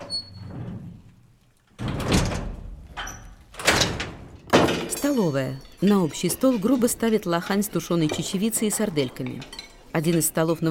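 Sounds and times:
cell door being shut and locked: 0:01.8 - 0:05.0
speech: 0:05.1 - 0:10.6.

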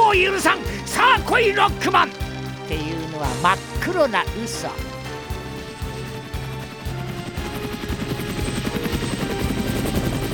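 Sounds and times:
speech: 0:00.1 - 0:05.0
helicopter: 0:04.8 - 0:10.3.

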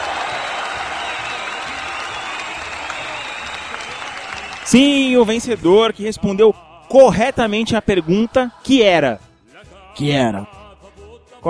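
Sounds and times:
applause for the first winner of a contest: 0:00.0 - 0:05.6
speech: 0:04.7 - 0:09.2, 0:10.0 - 0:10.6.

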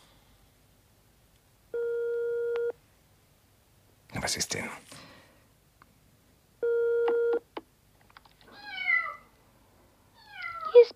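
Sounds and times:
loud steady electronic telephone tone: 0:01.8 - 0:02.8, 0:06.6 - 0:07.4
speech: 0:04.2 - 0:05.0
cat beside the telephone meowing over the phone line: 0:08.5 - 0:09.2.

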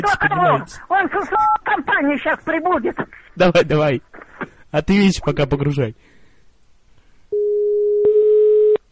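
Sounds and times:
speech: 0:00.0 - 0:06.1
telephone line tone as a call is placed: 0:07.3 - 0:08.8.

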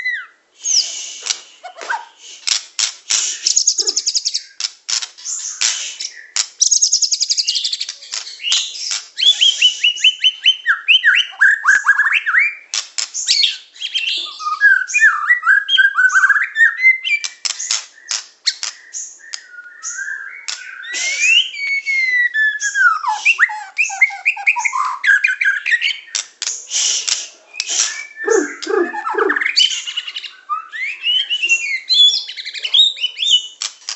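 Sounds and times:
Oriental magpie-robin singing: 0:03.2 - 0:26.2, 0:27.5 - 0:33.9.

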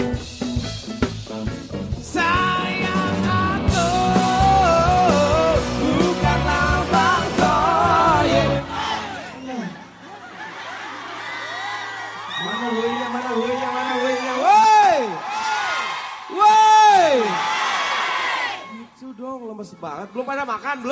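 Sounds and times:
crowd of Islamic boarding school students shouting and cheering: 0:00.0 - 0:20.9
scattered laughter: 0:09.6 - 0:11.4
speech: 0:20.1 - 0:20.9.

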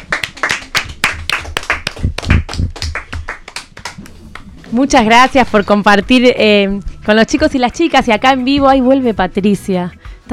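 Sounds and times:
applause: 0:00.0 - 0:04.5
speech: 0:04.7 - 0:10.3.

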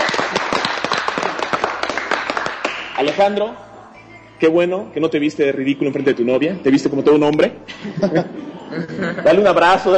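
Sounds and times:
applause: 0:00.0 - 0:03.3
speech: 0:03.0 - 0:03.7, 0:04.4 - 0:09.9
laughter: 0:07.7 - 0:09.6.

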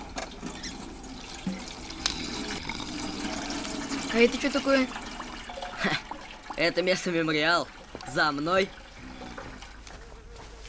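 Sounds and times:
petrol gushing from a large metal tap on a tank into a canister: 0:01.2 - 0:06.8
speech: 0:04.1 - 0:05.0, 0:05.8 - 0:08.8.

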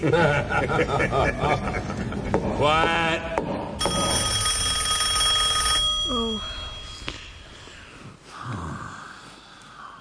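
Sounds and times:
laughter: 0:00.0 - 0:03.2
speech: 0:00.0 - 0:04.1
telephone ringing: 0:03.8 - 0:07.5.

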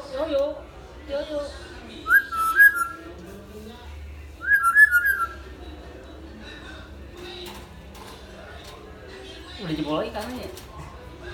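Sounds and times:
speech: 0:00.2 - 0:02.2, 0:09.7 - 0:10.6
hill myna whistle: 0:02.1 - 0:03.0, 0:04.4 - 0:05.4.

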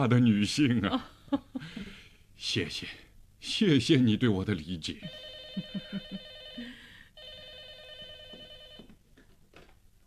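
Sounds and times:
speech: 0:00.0 - 0:01.2, 0:02.4 - 0:06.2
telephone ringing: 0:05.0 - 0:09.0.

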